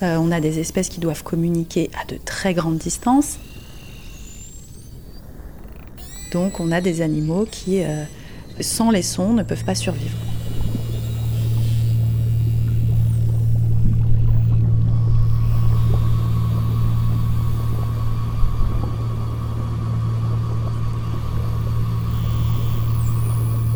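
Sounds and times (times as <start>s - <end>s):
speech: 0.0s - 3.5s, 6.3s - 10.3s
underwater ship noise in the Saint Lawrence estuary: 0.0s - 23.7s.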